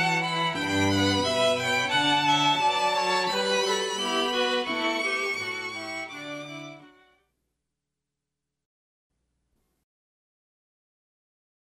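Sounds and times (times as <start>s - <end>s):
classical string quartet playing: 0.0s - 7.1s.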